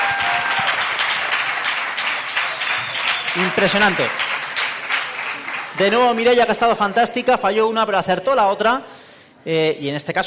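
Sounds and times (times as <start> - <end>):
audience applause: 0.0 - 6.9
speech: 3.4 - 4.3, 5.8 - 10.2.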